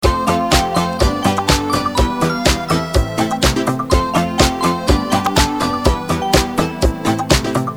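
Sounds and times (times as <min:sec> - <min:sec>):
music loop: 0:00.0 - 0:07.7.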